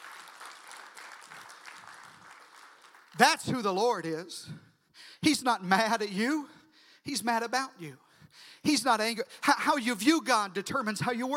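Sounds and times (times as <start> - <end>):
audience clapping: 0.0 - 3.9
speech: 3.2 - 4.6, 5.2 - 11.3.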